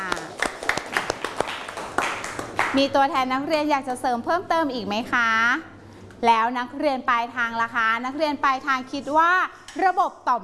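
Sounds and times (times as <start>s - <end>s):
classroom applause for a student: 0.0s - 2.8s
speech: 2.7s - 10.4s.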